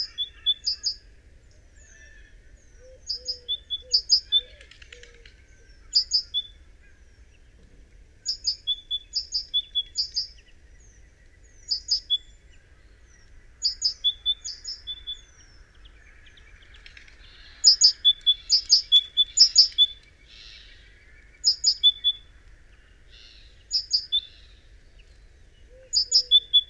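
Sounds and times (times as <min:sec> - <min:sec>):
great tit calling: 0:00.0 - 0:01.0, 0:03.0 - 0:04.5, 0:05.7 - 0:07.5, 0:08.2 - 0:16.2, 0:17.3 - 0:22.2, 0:23.1 - 0:24.6, 0:25.9 - 0:26.6
rustle: 0:00.0 - 0:26.6.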